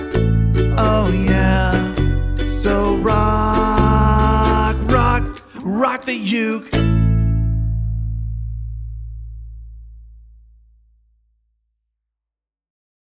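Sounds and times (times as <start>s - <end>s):
ukulele rock music: 0.0s - 9.3s.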